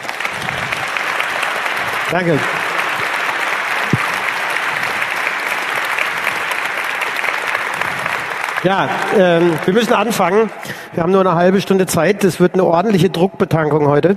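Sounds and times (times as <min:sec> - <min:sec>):
audience applause: 0:00.0 - 0:11.2
speech: 0:02.1 - 0:02.6, 0:08.6 - 0:14.1.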